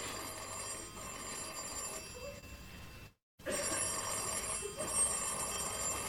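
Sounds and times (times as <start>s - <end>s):
telephone bell ringing at 2 o'clock in the morning: 0.0s - 6.0s.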